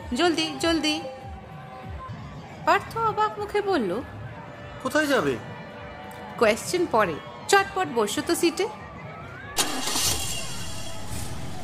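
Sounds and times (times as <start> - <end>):
speech: 0.1 - 1.2, 2.6 - 4.2, 4.8 - 5.5, 6.4 - 8.8
car engine starting in a Bengali audio drama: 9.6 - 11.6.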